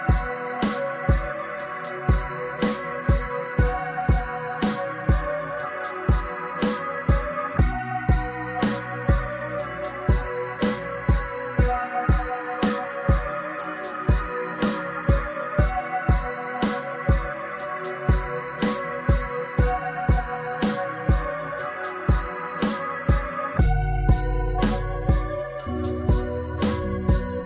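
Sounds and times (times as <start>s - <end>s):
lofi beat: 0.0s - 27.4s.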